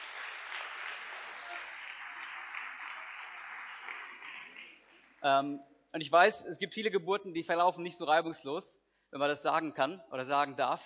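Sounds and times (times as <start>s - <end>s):
audience applause: 0.0s - 5.2s
speech: 5.2s - 10.8s.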